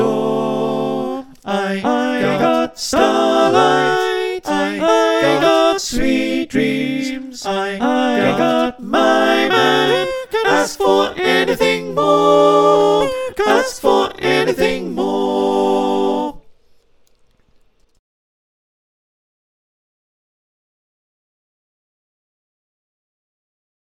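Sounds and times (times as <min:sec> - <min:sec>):
SATB choir singing: 0:00.0 - 0:16.5.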